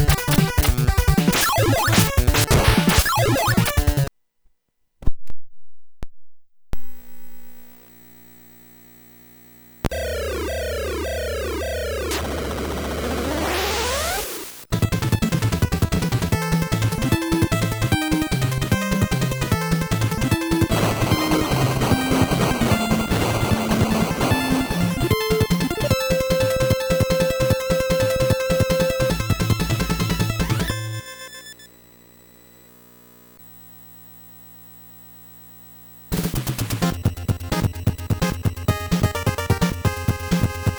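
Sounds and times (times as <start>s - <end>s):
Famicom cartridge game audio: 0.0s - 4.1s, 9.9s - 31.6s, 36.1s - 40.7s.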